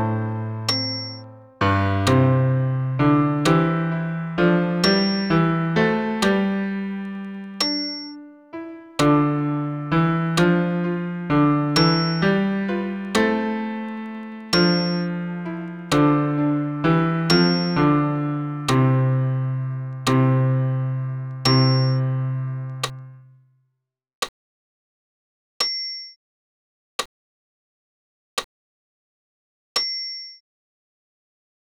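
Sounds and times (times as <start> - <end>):
piano accompaniment for bass voice: 0.0 - 23.4.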